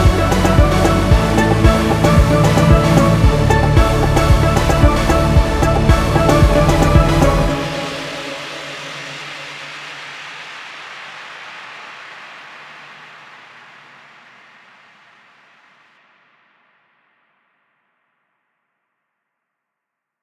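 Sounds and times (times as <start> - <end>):
uplifting trance remix: 0.0 - 11.6.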